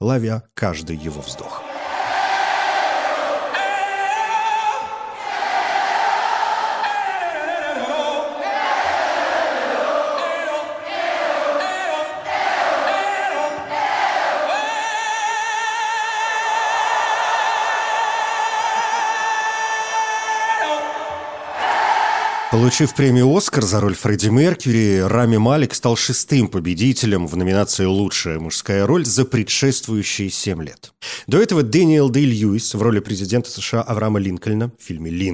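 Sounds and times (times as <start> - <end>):
speech: 0.0 - 1.7, 22.6 - 35.3
crowd yelling long sustained collective notes: 1.6 - 15.0, 16.3 - 22.8.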